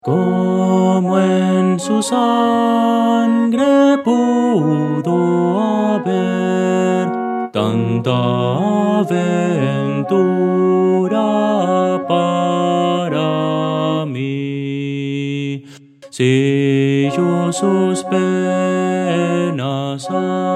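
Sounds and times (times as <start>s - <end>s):
Christian hymn melody: 0.0s - 20.5s.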